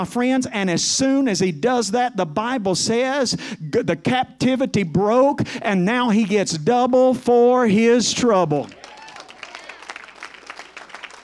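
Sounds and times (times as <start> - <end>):
speech: 0.0 - 8.8
scattered clapping from a congregation during a sermon: 8.6 - 11.2.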